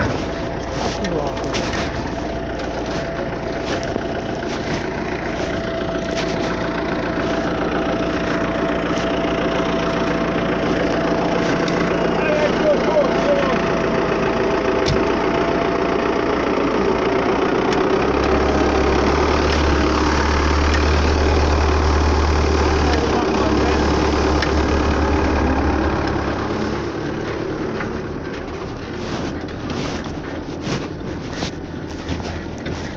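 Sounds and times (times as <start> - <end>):
faint voices: 0.0 - 14.6, 22.4 - 25.8
faulty tractor engine idling: 0.0 - 32.9.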